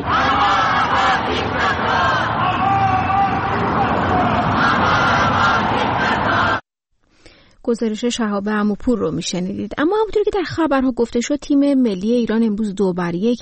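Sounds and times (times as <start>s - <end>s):
crowd of Iranians chanting slogans outside Islamic Republic embassy: 0.0s - 6.6s
speech: 7.7s - 13.4s.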